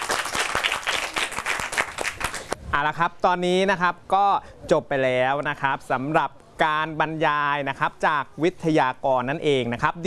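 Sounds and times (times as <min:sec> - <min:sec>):
students applauding guest speakers: 0:00.0 - 0:02.6
speech: 0:02.8 - 0:10.0.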